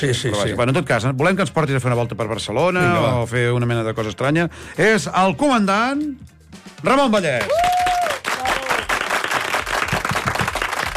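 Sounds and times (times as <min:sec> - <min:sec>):
speech: 0:00.0 - 0:07.7
audience applause: 0:07.4 - 0:10.9.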